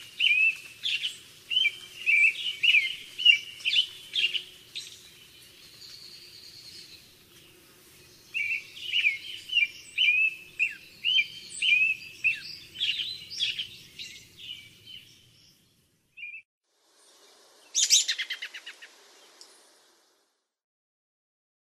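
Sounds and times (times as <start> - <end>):
American robin in the Western USA: 0.0 - 16.4, 17.3 - 19.6.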